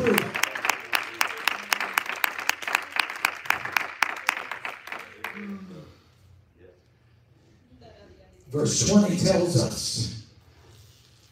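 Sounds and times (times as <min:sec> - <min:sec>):
audience clapping: 0:00.0 - 0:05.8
speech: 0:08.6 - 0:10.2.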